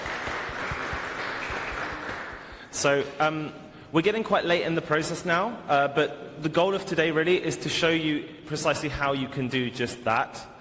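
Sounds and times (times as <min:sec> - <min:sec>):
audience applause: 0:00.0 - 0:02.6
speech: 0:02.8 - 0:10.5.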